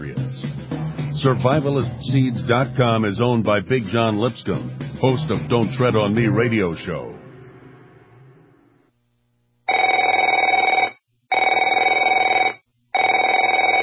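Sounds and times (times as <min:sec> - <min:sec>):
speech: 0:01.2 - 0:07.2
telephone ringing: 0:09.7 - 0:13.8.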